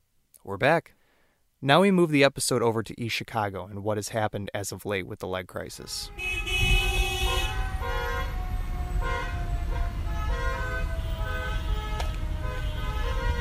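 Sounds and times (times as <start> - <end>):
speech: 0.4 - 1.0, 1.6 - 6.4
rumble of parade vehicles: 5.8 - 13.3
car horns honking during a parade procession in East Chicago: 5.9 - 13.3.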